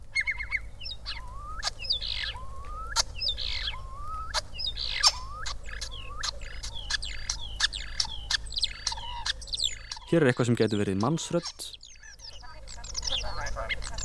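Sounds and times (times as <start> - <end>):
whimbrel calls in short repeated fragments: 0.1 - 14.0
speech: 10.1 - 11.8.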